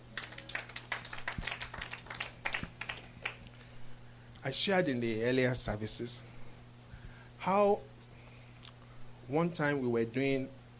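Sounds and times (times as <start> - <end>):
audience hand clapping: 0.0 - 3.6
speech: 4.4 - 6.3, 7.4 - 7.9, 9.3 - 10.6.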